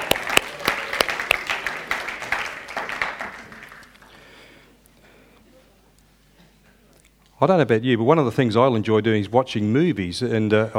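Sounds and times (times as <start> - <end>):
audience applause: 0.0 - 6.9
speech: 7.4 - 10.7.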